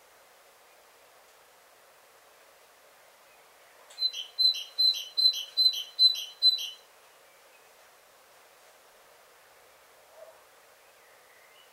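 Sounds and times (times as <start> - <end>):
great tit calls: 3.9 - 6.8.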